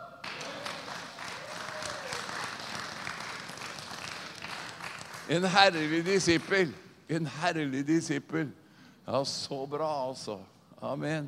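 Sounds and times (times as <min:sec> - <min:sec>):
audience applause: 0:00.0 - 0:06.7
speech: 0:05.3 - 0:11.2.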